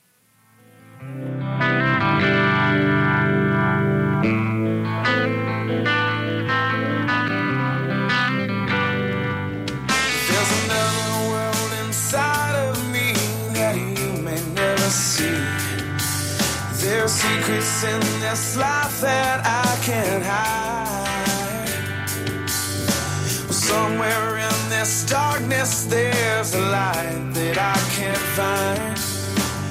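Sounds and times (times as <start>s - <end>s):
distorted electric guitar chords in a rock song intro: 0.0s - 29.6s
drums and cymbals: 9.7s - 29.6s.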